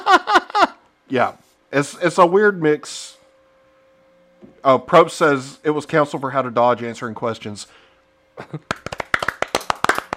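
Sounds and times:
speech: 1.1s - 3.1s, 4.6s - 7.8s, 8.4s - 8.8s
golf clap, one person's soft polite hand claps: 8.5s - 10.1s.

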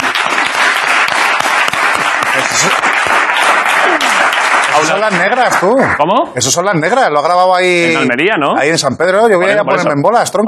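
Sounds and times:
applause: 0.0s - 6.0s
speech: 5.0s - 10.4s.

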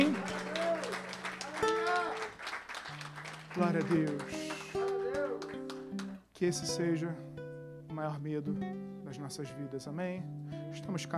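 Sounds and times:
audience applause: 0.0s - 6.2s
speech: 3.6s - 4.4s, 6.4s - 7.3s, 8.0s - 11.1s.

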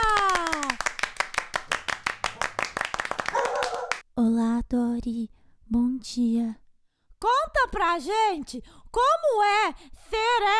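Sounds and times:
hand clapping: 0.0s - 4.0s
speech: 5.0s - 6.6s, 7.2s - 10.5s.

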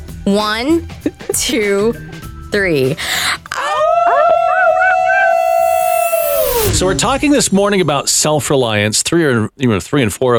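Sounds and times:
speech: 0.2s - 3.4s, 6.7s - 10.3s
people howling together like wolves: 3.6s - 6.0s.

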